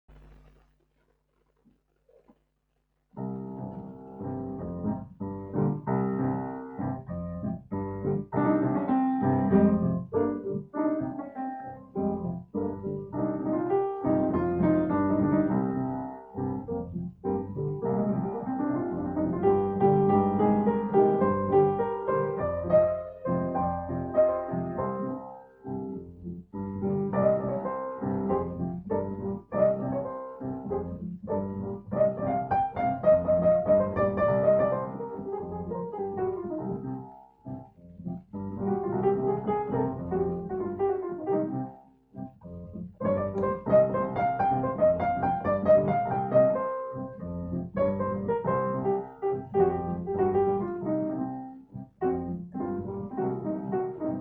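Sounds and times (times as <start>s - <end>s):
piano: 3.1s - 54.1s.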